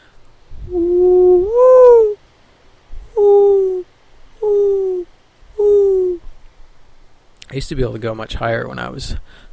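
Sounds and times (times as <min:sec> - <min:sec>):
man imitating a mourning dove's call: 0:00.6 - 0:02.2, 0:03.0 - 0:06.2
speech: 0:07.6 - 0:09.5.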